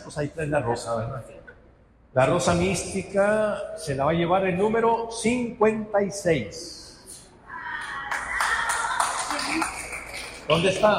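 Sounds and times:
speech: 0.1s - 1.4s, 2.1s - 6.8s, 10.5s - 10.9s
audience applause: 7.8s - 10.9s.

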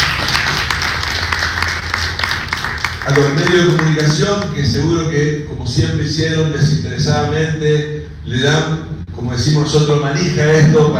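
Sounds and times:
audience applause at a public event: 0.0s - 4.4s
speech: 3.1s - 10.9s.

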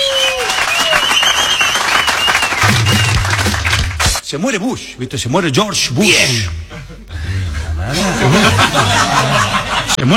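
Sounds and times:
cheers and whistles: 0.0s - 3.4s
audience applause: 0.0s - 4.2s
speech: 4.3s - 7.0s, 7.9s - 10.1s
laughter: 6.7s - 10.1s.

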